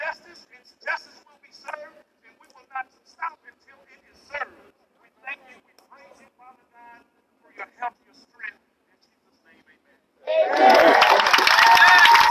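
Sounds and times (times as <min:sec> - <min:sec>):
man speaking at a protest in Niagara Square, Downtown Buffalo: 0:00.0 - 0:10.1
protest crowd cheering and clapping in Niagara Square, Downtown Buffalo: 0:10.2 - 0:12.3.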